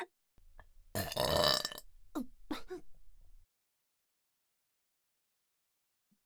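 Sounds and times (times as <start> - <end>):
burping: 0.7 - 3.4.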